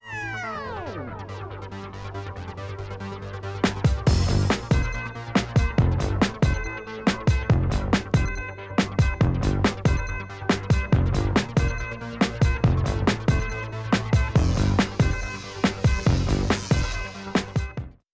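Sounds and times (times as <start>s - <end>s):
instrumental music: 3.6s - 17.9s.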